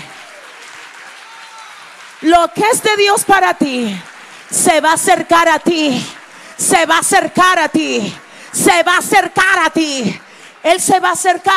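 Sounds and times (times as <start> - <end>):
audience applause: 0.0 - 11.5
speech: 2.2 - 11.5.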